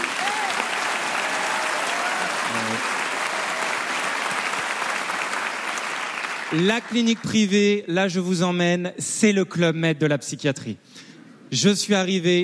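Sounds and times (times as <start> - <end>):
audience applause: 0.0 - 7.4
speech: 6.5 - 12.4.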